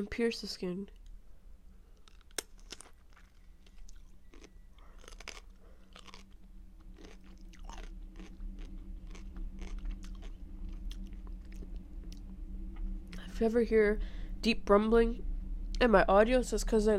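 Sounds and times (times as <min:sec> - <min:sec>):
speech: 0:00.0 - 0:01.0, 0:13.4 - 0:16.9
biting into juicy fruit: 0:02.0 - 0:11.7.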